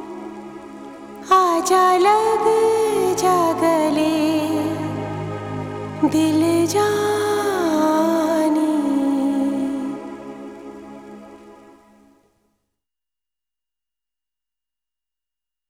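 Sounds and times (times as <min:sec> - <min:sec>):
sad song: 0:00.0 - 0:11.9.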